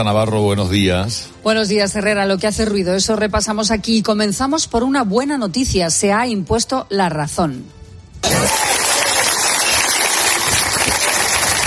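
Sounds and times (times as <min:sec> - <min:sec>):
speech: 0:00.0 - 0:08.6
townspeople of Alpedrete in Madrid applauding: 0:08.2 - 0:11.6.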